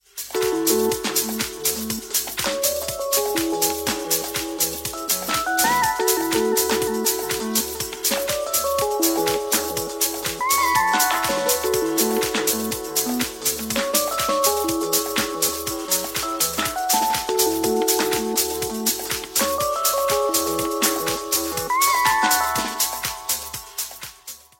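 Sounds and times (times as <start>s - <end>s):
ringtone: 0.4s - 24.3s.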